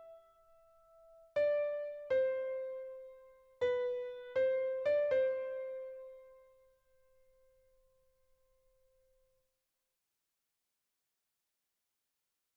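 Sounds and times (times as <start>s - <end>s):
Christmas carol played on piano: 0.0s - 6.6s.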